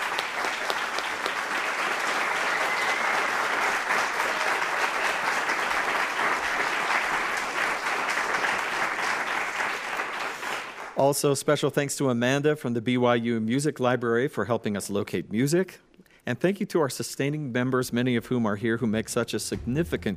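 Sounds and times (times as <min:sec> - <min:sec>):
audience round of applause: 0:00.0 - 0:11.0
speech: 0:11.0 - 0:20.1.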